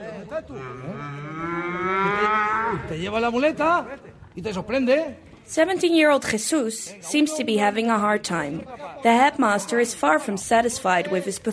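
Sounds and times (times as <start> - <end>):
speech: 0.0 - 2.0, 2.7 - 11.5
calf mooing at a bullfighting school practice class: 0.5 - 2.8.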